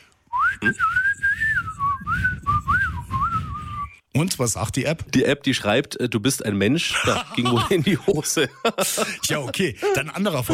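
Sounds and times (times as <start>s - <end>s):
person whistling a bird-like melody: 0.3s - 4.0s
speech: 0.6s - 1.0s, 4.2s - 10.5s
laughter: 6.8s - 10.5s.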